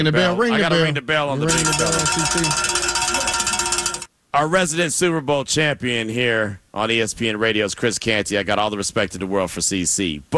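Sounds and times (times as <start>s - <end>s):
speech: 0.0s - 2.8s, 4.4s - 10.3s
bell ringing: 1.5s - 4.1s.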